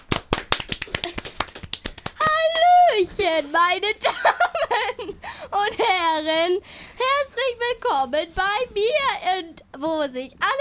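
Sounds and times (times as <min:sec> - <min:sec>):
audience applauding a contestant at a local talent show: 0:00.0 - 0:02.9
speech: 0:03.0 - 0:06.8, 0:07.4 - 0:10.6.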